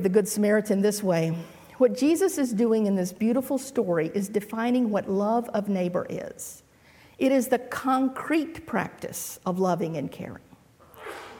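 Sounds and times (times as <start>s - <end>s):
speech: 0.0s - 6.6s, 7.2s - 10.5s
sneeze: 10.9s - 11.3s.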